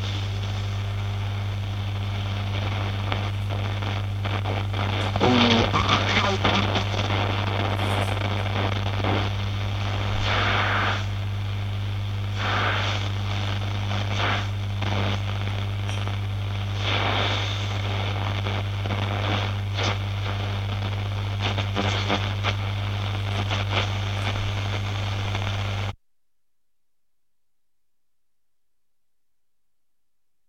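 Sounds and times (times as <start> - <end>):
old radio static crackling: 0.0 - 26.0.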